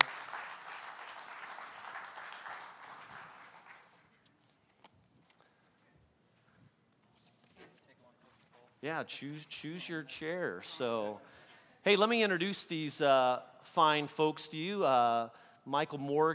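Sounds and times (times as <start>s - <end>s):
audience applauding as guests come up: 0.0s - 4.1s
speech: 8.8s - 16.3s.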